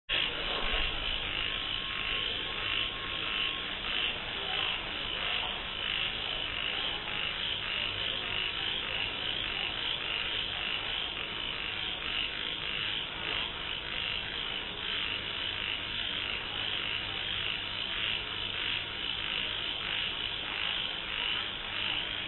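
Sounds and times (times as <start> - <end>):
night ambience at Nai Thon Buri: 0.1 - 22.2.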